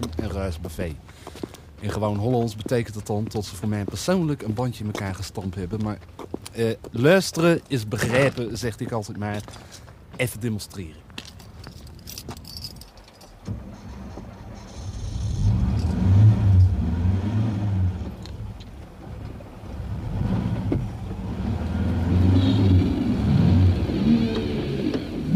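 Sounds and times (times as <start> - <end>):
speech: 0.4 - 11.0
car engine pulling away from a red light: 13.5 - 25.3.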